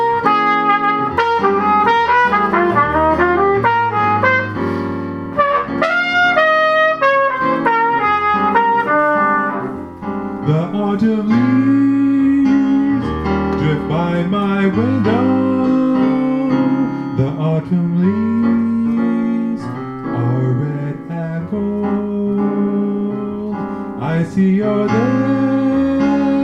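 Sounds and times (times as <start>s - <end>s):
trumpet: 0.0s - 10.2s
piano: 0.0s - 26.4s
person singing: 10.4s - 26.4s.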